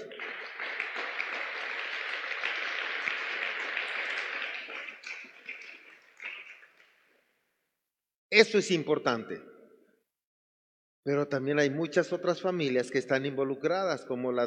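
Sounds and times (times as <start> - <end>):
audience applause: 0.0 - 6.7
speech: 8.4 - 9.5, 11.1 - 14.4.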